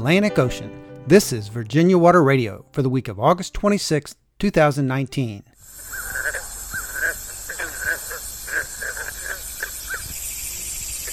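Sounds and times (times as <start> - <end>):
speech: 0.0 - 5.5
cicadas in a Virginia meadow: 5.6 - 11.1
green frogs in a Virginia wetland: 5.6 - 11.1.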